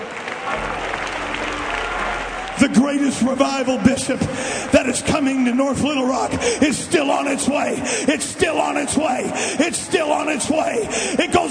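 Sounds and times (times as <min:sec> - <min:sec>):
audience clapping: 0:00.0 - 0:05.5
speech: 0:02.7 - 0:11.4.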